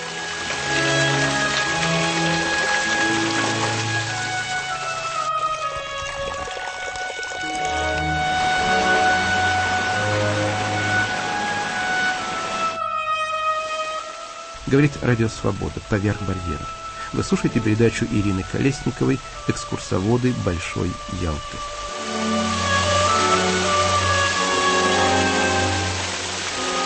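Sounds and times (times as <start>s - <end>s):
water gurgling in the fountain hall: 0.0s - 12.8s, 13.9s - 26.8s
speech: 14.7s - 21.8s.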